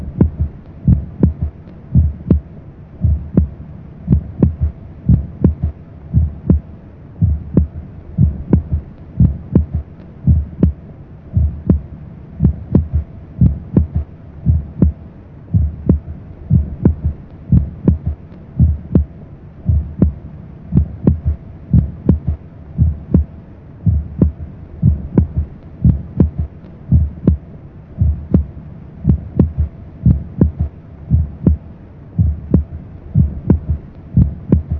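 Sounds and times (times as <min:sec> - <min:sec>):
normal third heart sound: 0:00.0 - 0:27.4, 0:28.0 - 0:31.6, 0:32.2 - 0:34.7.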